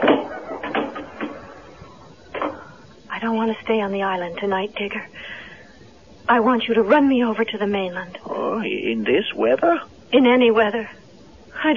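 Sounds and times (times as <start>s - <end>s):
door closing: 0.0s - 2.8s
speech: 3.4s - 5.4s, 6.3s - 11.0s, 11.6s - 11.7s.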